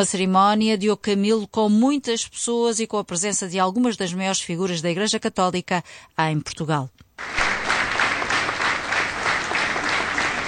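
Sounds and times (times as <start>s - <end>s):
speech: 0.0s - 7.5s
crowd applauding at a funeral procession: 7.2s - 10.4s.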